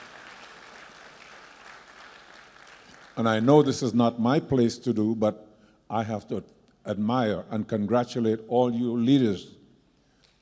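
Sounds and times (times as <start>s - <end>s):
audience applauding themselves during a church service: 0.0s - 3.9s, 10.2s - 10.4s
speech: 3.2s - 9.6s.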